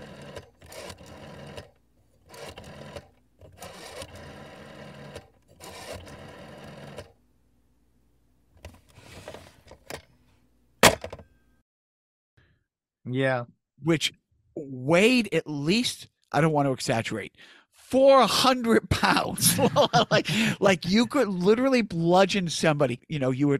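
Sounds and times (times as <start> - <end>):
rotary phone dial whirring back: 0.0 - 7.2
speech: 13.1 - 14.2, 14.9 - 23.5
laughter: 18.7 - 20.9.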